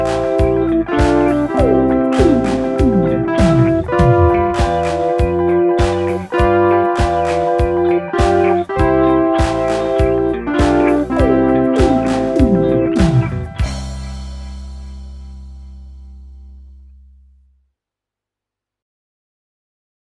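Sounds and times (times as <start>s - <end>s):
film melody disco dance music: 0.0s - 13.8s.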